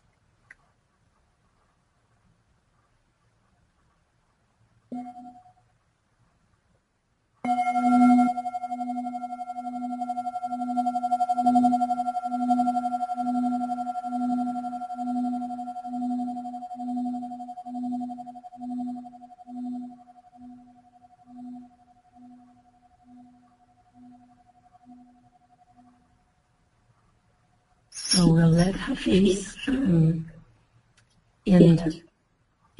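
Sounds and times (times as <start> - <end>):
meditation bell ringing: 7.5 - 17.1, 28.0 - 28.9
speech: 28.9 - 30.1, 31.6 - 32.0.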